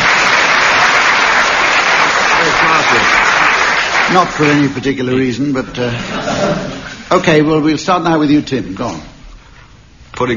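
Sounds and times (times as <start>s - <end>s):
audience applause: 0.0s - 5.1s
speech: 4.1s - 9.1s, 10.2s - 10.3s
laughter: 5.8s - 7.1s.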